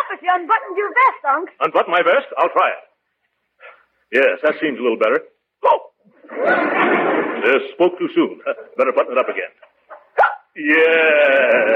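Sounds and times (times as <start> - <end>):
speech: 0.1 - 2.9, 3.6 - 9.7, 10.6 - 11.7
laughter: 6.2 - 9.6, 11.0 - 11.7
hiccup: 10.2 - 10.5.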